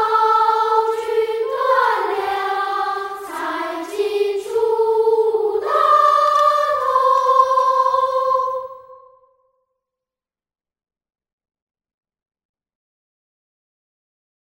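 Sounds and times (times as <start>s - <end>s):
school song vocals: 0.0s - 9.2s.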